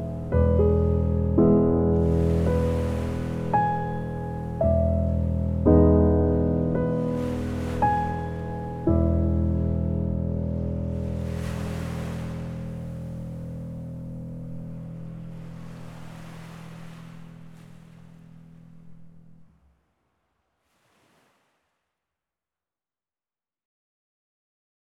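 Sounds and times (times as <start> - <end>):
piano: 0.0 - 19.6
ocean waves: 0.0 - 21.8.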